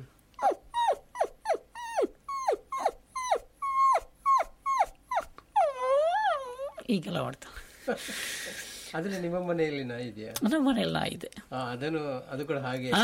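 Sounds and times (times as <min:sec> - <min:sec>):
family pet dog whimpering: 0:00.4 - 0:06.9
speech: 0:06.9 - 0:13.0.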